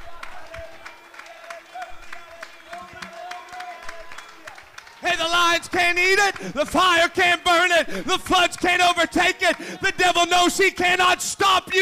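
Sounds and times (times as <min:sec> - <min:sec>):
audience clapping: 0:00.0 - 0:11.0
speech: 0:05.1 - 0:11.8.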